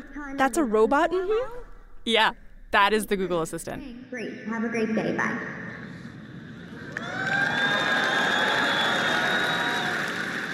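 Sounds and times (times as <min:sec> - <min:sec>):
speech: 0:00.2 - 0:05.7
crowd of developers applauding: 0:06.6 - 0:10.5
whistles and cheers: 0:06.9 - 0:10.5.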